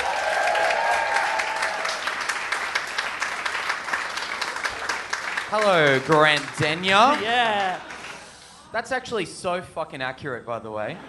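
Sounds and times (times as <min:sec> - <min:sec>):
studio audience applause welcoming a comedian guest: 0:00.0 - 0:08.6
speech: 0:05.5 - 0:07.9, 0:08.7 - 0:11.0.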